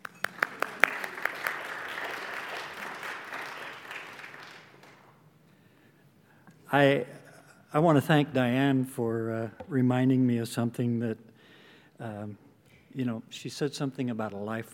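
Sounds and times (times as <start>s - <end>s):
church audience clapping to welcome a speaker: 0.0s - 5.2s
speech: 6.7s - 11.3s, 12.0s - 12.4s, 13.0s - 14.7s.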